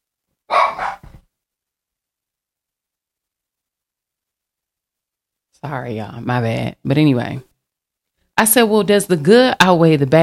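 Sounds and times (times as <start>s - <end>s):
dogs barking: 0.5s - 1.2s
speech: 5.6s - 7.5s, 8.4s - 10.2s.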